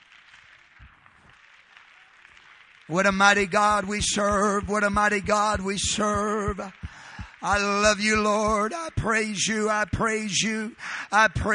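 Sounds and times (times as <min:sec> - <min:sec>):
congregation clapping hands during praise and worship: 0:00.0 - 0:11.5
speech: 0:02.9 - 0:11.5
soft low thumps: 0:03.6 - 0:08.6.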